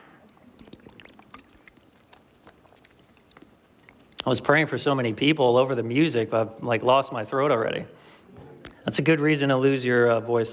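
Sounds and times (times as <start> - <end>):
person drinking water: 0.0 - 4.4
speech: 4.2 - 8.2, 8.9 - 10.5.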